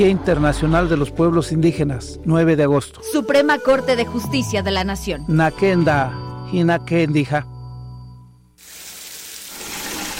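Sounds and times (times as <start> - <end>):
speech: 0.0 - 7.5
hot water running from a tap into a bucket: 8.6 - 10.1.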